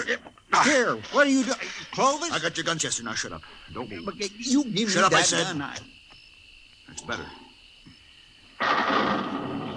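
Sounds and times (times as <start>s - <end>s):
speech: 0.1s - 6.0s, 6.9s - 7.5s, 8.6s - 9.3s
thunder: 8.6s - 9.7s.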